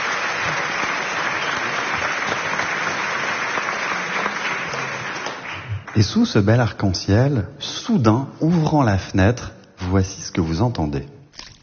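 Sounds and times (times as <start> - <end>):
applause: 0.0 - 6.8
speech: 6.0 - 11.2.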